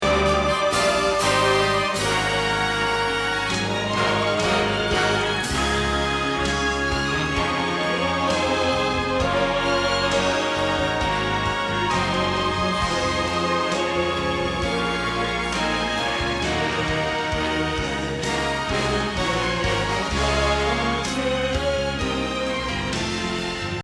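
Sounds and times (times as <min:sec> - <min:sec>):
bass: 0:00.0 - 0:23.8.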